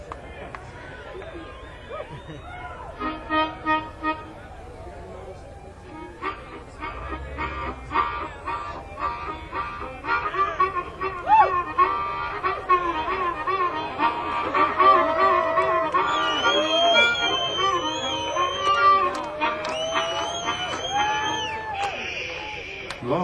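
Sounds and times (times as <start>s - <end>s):
harmonica playing a lively tune: 2.9s - 4.6s, 5.8s - 23.0s.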